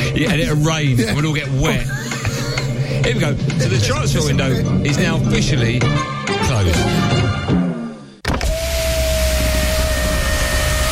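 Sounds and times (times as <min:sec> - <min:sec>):
speech: 0:00.2 - 0:02.0, 0:02.9 - 0:07.5
laughter: 0:01.0 - 0:04.6
car power window motor whirring: 0:08.3 - 0:10.9.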